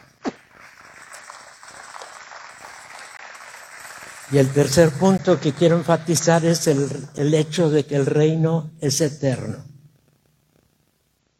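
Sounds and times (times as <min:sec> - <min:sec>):
audience applause: 0:00.0 - 0:07.9
speech: 0:04.3 - 0:09.7.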